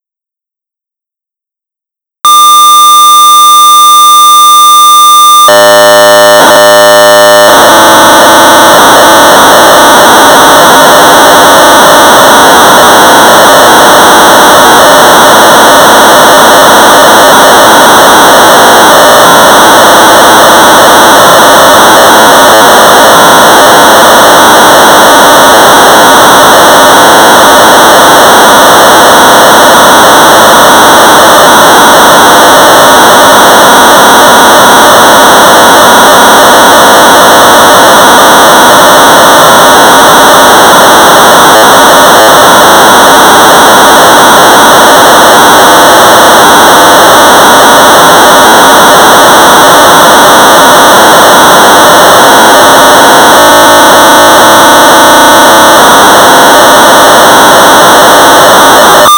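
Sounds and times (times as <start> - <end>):
1200 baud modem data tones: 2.3 - 48.0, 48.6 - 55.0, 55.6 - 59.1.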